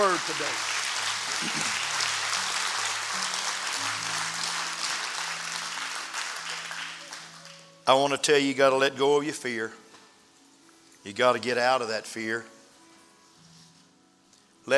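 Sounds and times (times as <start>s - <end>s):
speech: 0.0s - 0.8s, 1.4s - 1.8s, 7.9s - 9.8s, 11.0s - 12.6s
audience clapping: 0.0s - 7.7s.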